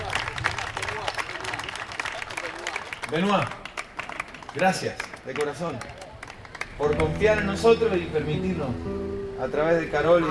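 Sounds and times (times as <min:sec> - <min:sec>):
crowd chatter and voices: 0:00.0 - 0:03.1, 0:03.9 - 0:10.2
audience applause: 0:00.0 - 0:07.7
speech: 0:03.1 - 0:03.6, 0:04.5 - 0:06.0, 0:06.8 - 0:10.2.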